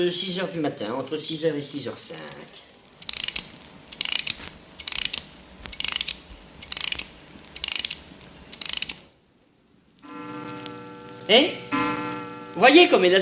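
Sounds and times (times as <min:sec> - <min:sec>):
speech: 0:00.0 - 0:02.6, 0:11.3 - 0:11.7, 0:12.6 - 0:13.2
mechanical clock being wound: 0:03.0 - 0:09.0.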